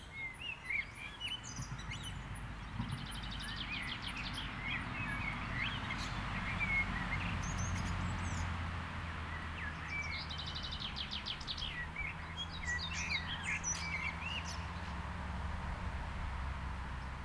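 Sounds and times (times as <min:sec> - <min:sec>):
birds: 0:00.0 - 0:17.2
cars: 0:00.1 - 0:17.2.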